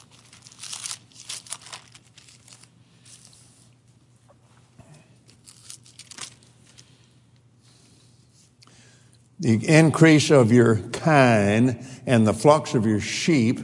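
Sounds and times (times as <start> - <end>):
book pages being flipped: 0.0 - 3.8, 5.3 - 6.9
speech: 9.4 - 13.6.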